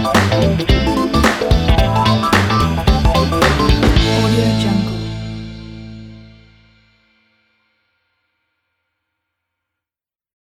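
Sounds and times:
funk groove: 0:00.0 - 0:06.4.

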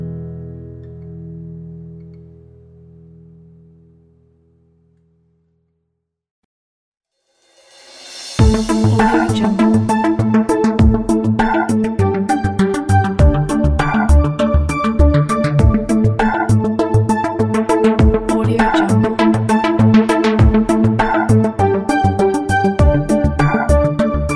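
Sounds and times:
logo ident opener: 0:08.2 - 0:24.3.

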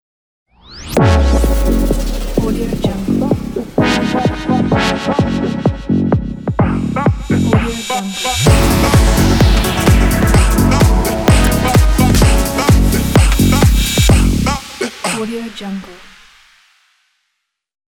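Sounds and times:
modern house music intro logo: 0:00.9 - 0:15.0.

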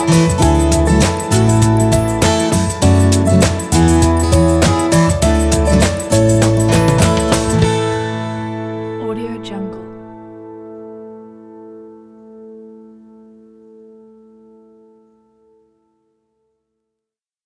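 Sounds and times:
feel-good summer music: 0:00.0 - 0:09.2.

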